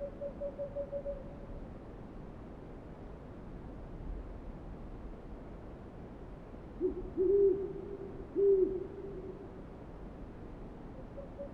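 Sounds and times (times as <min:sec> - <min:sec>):
owl hooting: 0:00.0 - 0:01.3, 0:06.8 - 0:09.4, 0:11.2 - 0:11.5.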